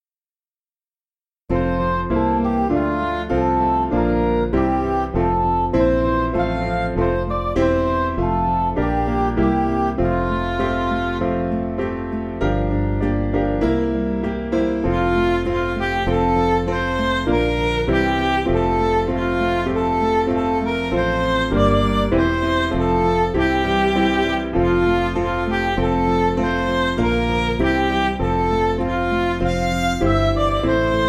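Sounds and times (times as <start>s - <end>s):
MIDI music: 1.5s - 31.0s.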